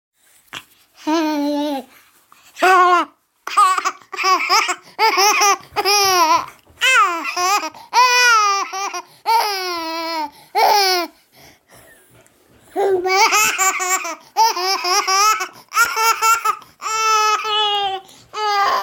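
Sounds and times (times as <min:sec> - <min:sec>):
baby laughing: 0:02.6 - 0:11.1, 0:12.8 - 0:18.8.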